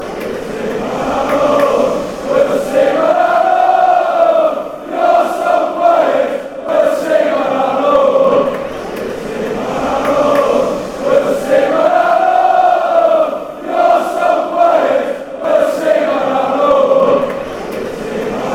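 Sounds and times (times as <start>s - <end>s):
fans chanting: 0.0s - 18.5s.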